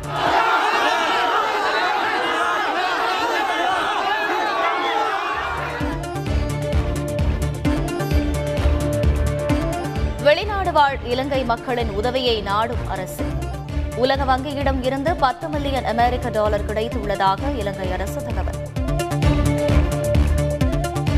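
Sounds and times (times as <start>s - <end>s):
music: 0.0s - 1.0s, 5.0s - 21.1s
crowd of fans shouting outside actor Rajinikanth's house on Tamil New Year: 0.0s - 7.5s
speech: 10.8s - 13.4s, 14.0s - 18.3s.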